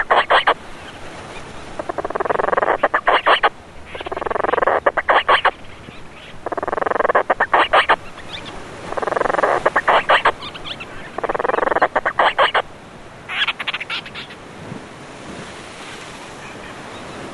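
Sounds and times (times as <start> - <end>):
Painho bird calling on Graciosa in Madeira and the Azores: 0.0 - 12.7, 13.3 - 14.4.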